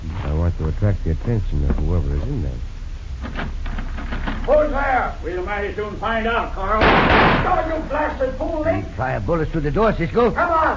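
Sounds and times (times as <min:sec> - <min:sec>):
speech: 0:00.6 - 0:03.5, 0:04.5 - 0:10.7
gunshots fired through a door: 0:06.8 - 0:07.6.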